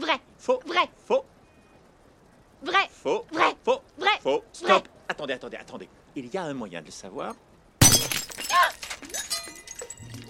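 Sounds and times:
speech: 0.1s - 1.3s, 2.6s - 8.1s
fake glass ruby shattering: 7.8s - 10.2s
glass pieces clinking: 7.8s - 10.2s.

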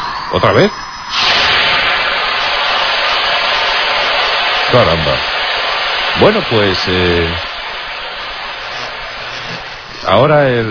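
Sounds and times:
speech: 0.3s - 1.2s, 4.7s - 5.3s, 6.2s - 7.5s, 10.1s - 10.7s
power drill running with a steady hissing whir: 1.0s - 10.7s.

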